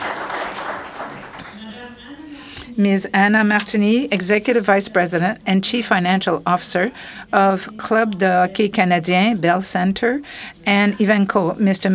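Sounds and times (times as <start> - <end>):
audience applause after a company founder is introduced: 0.0 - 2.0
speech: 2.8 - 11.9.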